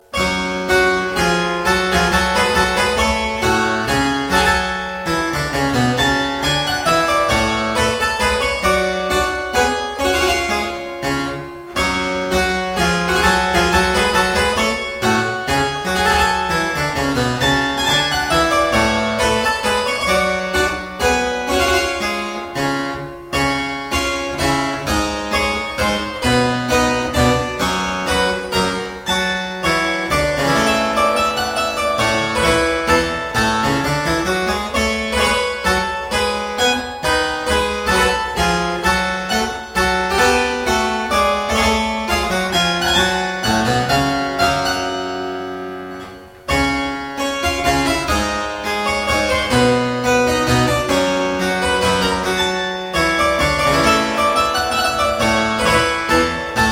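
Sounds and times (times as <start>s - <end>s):
minuet: 0.0s - 56.7s.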